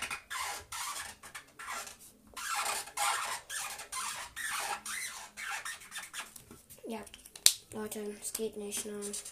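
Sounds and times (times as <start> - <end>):
marker pen scribbling on paper: 0.0 - 6.4
speech: 6.9 - 9.3.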